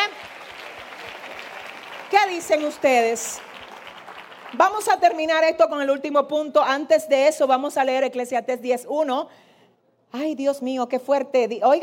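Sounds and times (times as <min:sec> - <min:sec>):
loud applause for the Lord: 0:00.0 - 0:05.0
speech: 0:02.3 - 0:03.5, 0:04.5 - 0:09.5, 0:10.1 - 0:11.8.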